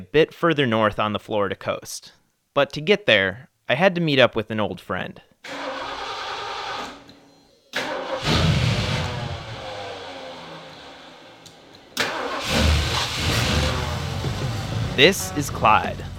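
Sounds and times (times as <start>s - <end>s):
speech: 0.0s - 5.7s, 15.0s - 16.1s
old car engine starting and revving: 5.4s - 16.1s.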